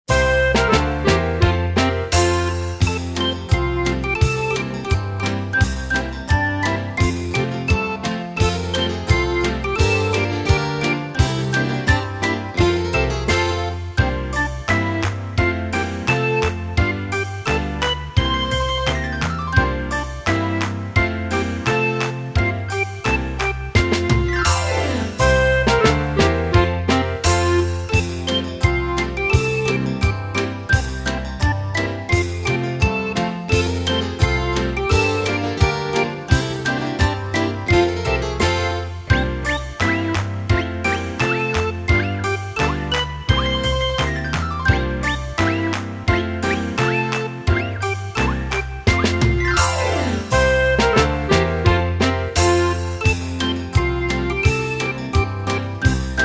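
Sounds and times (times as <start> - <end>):
song accompaniment: 0.1 - 56.2.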